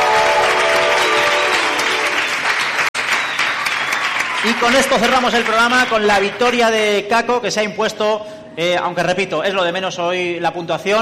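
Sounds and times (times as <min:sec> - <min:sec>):
studio audience applause: 0:00.0 - 0:06.4
speech: 0:04.5 - 0:11.0.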